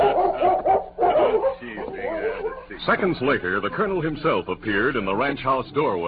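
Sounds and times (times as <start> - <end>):
German shepherd barking a welcome: 0.0 - 2.7
speech: 2.8 - 6.0.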